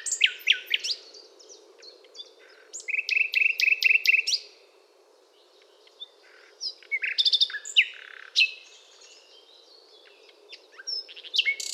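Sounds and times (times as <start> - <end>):
Common nightingale singing: 0.0 - 4.6, 5.4 - 11.7.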